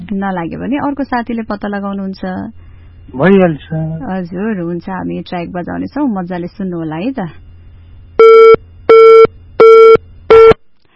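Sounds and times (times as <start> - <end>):
speech: 0.1 - 7.4
telephone busy tone beeps after a disconnected call: 8.2 - 10.6.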